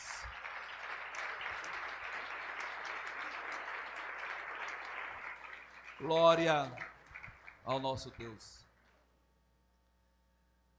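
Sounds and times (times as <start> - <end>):
audience applause: 0.0 - 8.4
speech: 6.0 - 6.8, 7.6 - 8.6.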